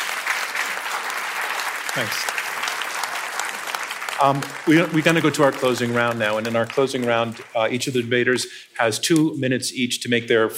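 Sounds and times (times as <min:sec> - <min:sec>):
audience applause: 0:00.0 - 0:08.2
speech: 0:02.0 - 0:02.4, 0:04.2 - 0:10.5.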